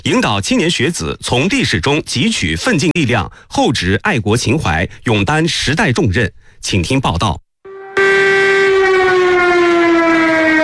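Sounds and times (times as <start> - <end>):
speech: 0.0 - 7.4
air raid siren: 7.7 - 10.6.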